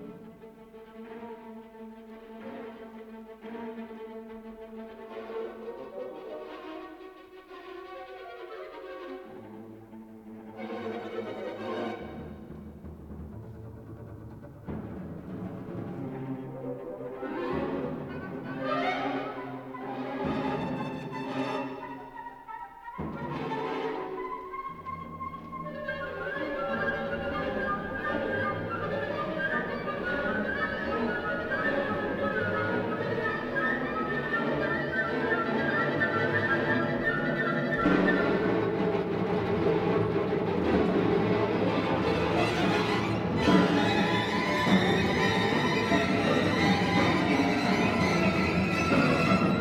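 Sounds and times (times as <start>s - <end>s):
orchestral music: 0.0s - 49.6s.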